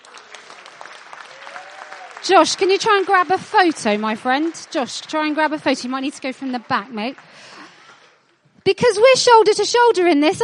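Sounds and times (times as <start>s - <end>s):
audience cheering: 0.0s - 7.4s
speech: 2.2s - 7.6s, 8.7s - 10.4s.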